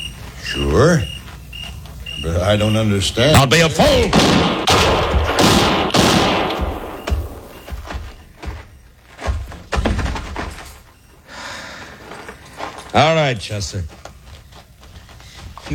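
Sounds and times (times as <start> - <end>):
speech: 0.5 - 1.2, 2.2 - 4.8, 13.0 - 14.0
gunshots in a radio western drama: 3.4 - 8.1
heavy thuds and thumps: 3.4 - 11.1.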